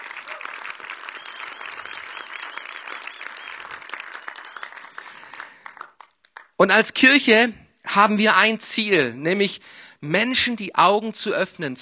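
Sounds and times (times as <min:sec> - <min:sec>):
audience applause: 0:00.0 - 0:06.6
speech: 0:06.6 - 0:11.8.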